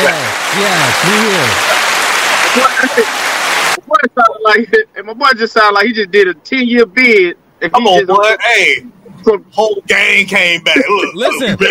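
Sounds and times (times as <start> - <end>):
laughter: 0.0 - 3.2, 9.6 - 11.7
soundboard clapping sound effect: 0.0 - 3.8
speech: 0.6 - 1.7, 2.6 - 11.7.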